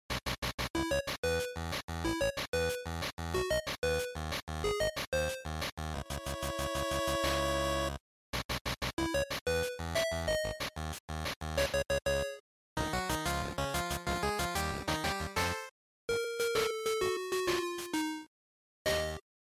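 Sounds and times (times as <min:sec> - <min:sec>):
Game Boy fighting music: 0:00.4 - 0:18.3, 0:18.9 - 0:19.2.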